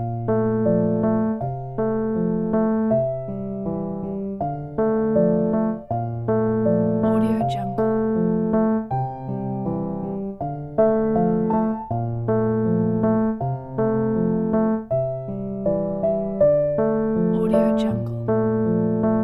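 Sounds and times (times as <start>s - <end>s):
calming thoughtful piano music: 0.0s - 19.2s.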